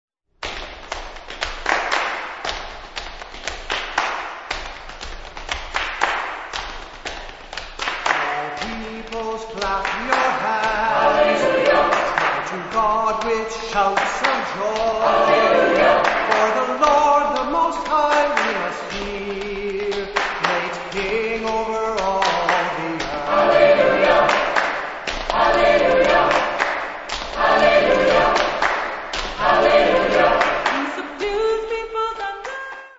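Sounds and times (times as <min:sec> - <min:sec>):
people clapping: 0:00.4 - 0:32.9.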